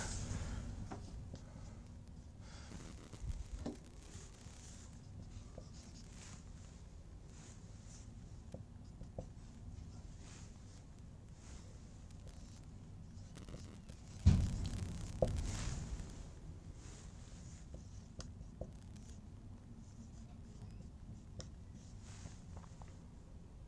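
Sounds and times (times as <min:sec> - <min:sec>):
steady hiss: 0:00.0 - 0:08.3, 0:09.3 - 0:20.8
someone writing out an equation during a lecture: 0:01.0 - 0:16.2, 0:16.8 - 0:19.2, 0:19.8 - 0:22.5.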